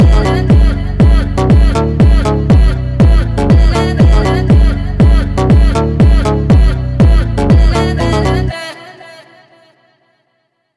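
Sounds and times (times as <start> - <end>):
phonk music: 0.0 - 8.6.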